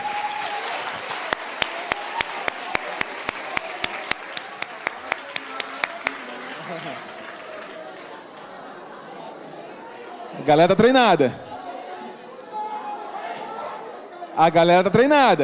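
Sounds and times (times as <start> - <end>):
audience clapping in unison: 0.0 - 8.5
murmur of crowd voices: 0.8 - 14.4
speech: 10.5 - 11.4, 14.4 - 15.4.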